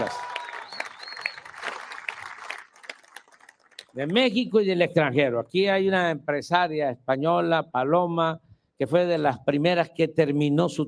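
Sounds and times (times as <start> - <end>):
audience applause: 0.0 - 4.0
speech: 4.0 - 10.8.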